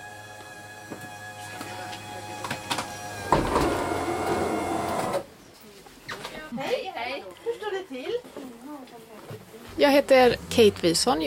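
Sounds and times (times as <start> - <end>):
bus doors opening: 0.0 - 5.3
speech: 9.8 - 11.2.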